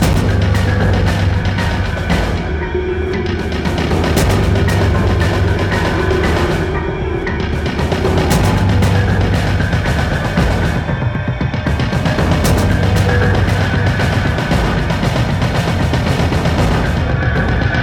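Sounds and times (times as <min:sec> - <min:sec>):
screaming attack loop: 0:00.0 - 0:17.8.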